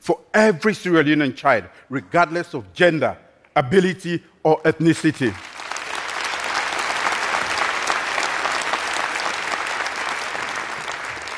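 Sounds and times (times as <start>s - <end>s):
speech: 0.0s - 5.5s
audience applause: 5.4s - 11.3s.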